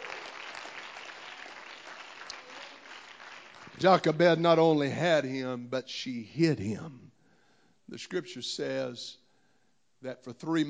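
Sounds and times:
audience clapping: 0.0s - 4.4s
speech: 3.8s - 7.1s, 7.9s - 9.2s, 10.0s - 10.6s.

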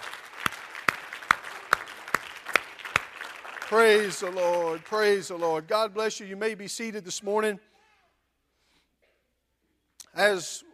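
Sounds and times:
group clapping hands in praise: 0.0s - 5.4s
speech: 3.7s - 7.7s, 10.2s - 10.7s.

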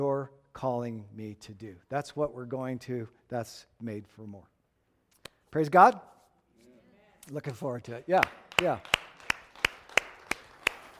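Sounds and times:
speech: 0.0s - 4.5s, 5.5s - 6.1s, 7.3s - 9.2s
slow sparse handclapping: 7.5s - 10.9s.

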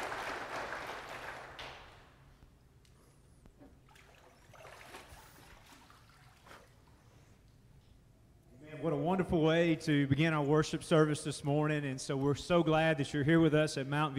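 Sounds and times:
audience applause: 0.0s - 2.1s
speech: 8.8s - 14.1s.

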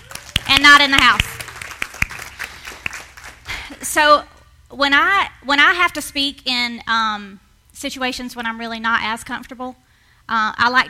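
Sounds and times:
audience applause: 0.0s - 3.8s
speech: 0.6s - 1.3s, 3.9s - 10.8s.

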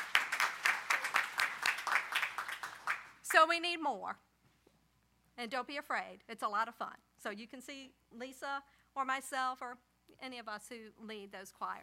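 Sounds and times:
audience applause: 0.0s - 3.1s
speech: 3.3s - 4.3s, 5.4s - 11.8s.

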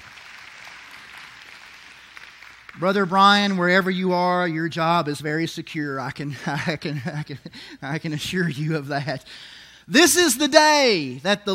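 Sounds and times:
audience hand clapping: 0.0s - 3.6s
speech: 2.8s - 11.5s.

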